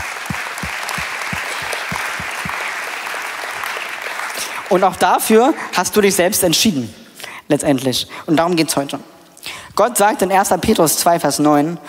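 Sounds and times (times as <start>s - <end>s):
audience applause: 0.0s - 4.5s
speech: 4.7s - 9.1s, 9.8s - 11.8s.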